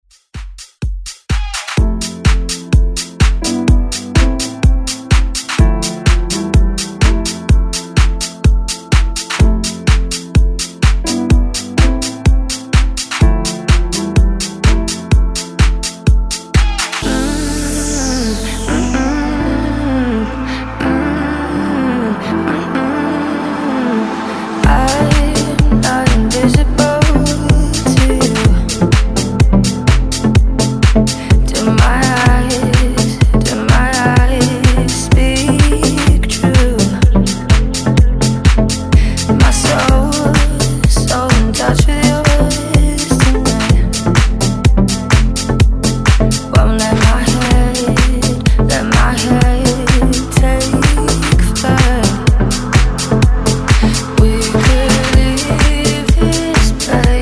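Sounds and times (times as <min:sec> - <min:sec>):
dance music: 0:00.4 - 0:57.2.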